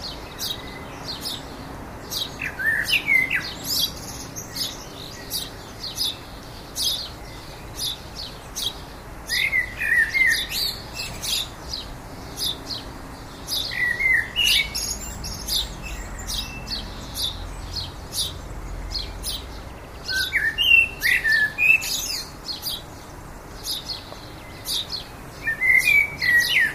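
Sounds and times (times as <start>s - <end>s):
common blackbird singing: 0.0s - 26.7s.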